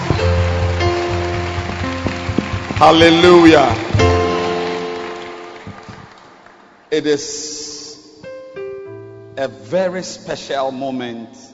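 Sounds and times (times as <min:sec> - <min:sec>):
audience clapping hands: 0:00.0 - 0:06.9
speech: 0:02.8 - 0:04.1, 0:06.9 - 0:07.6, 0:09.4 - 0:11.5.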